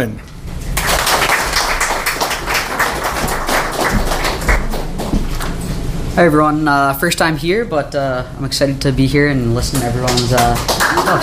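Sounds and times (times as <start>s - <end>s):
speech: 0.0s - 0.3s, 6.2s - 11.2s
audience applause: 0.8s - 5.2s, 10.0s - 11.2s.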